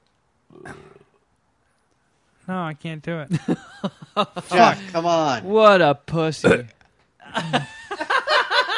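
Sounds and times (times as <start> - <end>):
weak burp: 0.5 - 1.3
speech: 2.5 - 6.8, 7.4 - 7.7
laughter: 7.2 - 8.7.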